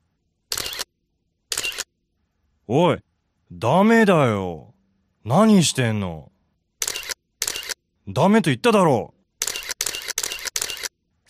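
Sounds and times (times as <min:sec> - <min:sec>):
camera shutter: 0:00.5 - 0:00.9, 0:01.5 - 0:01.9, 0:06.8 - 0:07.8, 0:09.4 - 0:10.9
speech: 0:02.7 - 0:06.3, 0:08.1 - 0:09.2.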